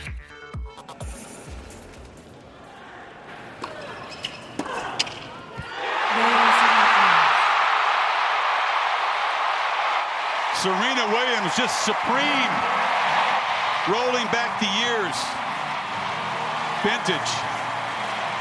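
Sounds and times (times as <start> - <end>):
tennis stadium crowd cheering: 4.6 - 18.3
speech: 11.4 - 13.2, 13.8 - 15.4, 16.8 - 17.5.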